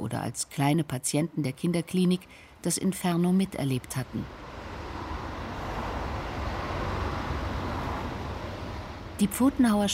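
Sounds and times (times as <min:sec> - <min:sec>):
speech: 0:00.1 - 0:04.5, 0:09.2 - 0:09.9
road traffic noise from a bridge: 0:03.4 - 0:09.9.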